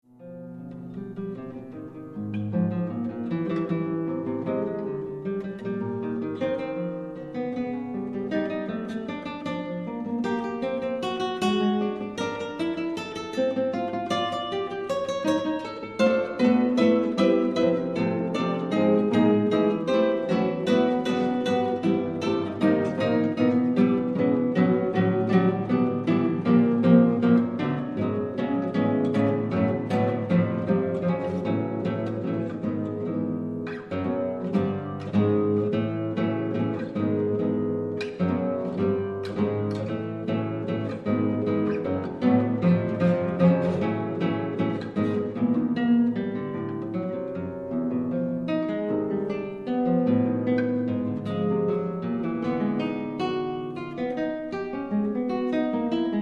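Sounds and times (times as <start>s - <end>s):
duet for two guitars: 0.0s - 56.2s.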